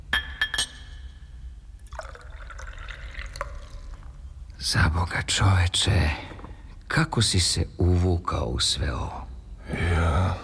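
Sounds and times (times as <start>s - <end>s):
glass clinks: 0.1s - 1.2s
whisky being poured into a glass: 1.8s - 4.3s
speech: 4.6s - 6.3s, 6.9s - 10.4s.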